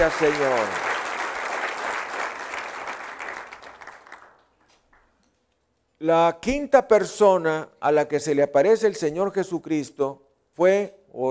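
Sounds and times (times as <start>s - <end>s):
speech: 0.0s - 0.9s, 6.0s - 11.2s
audience applauding: 0.0s - 4.7s.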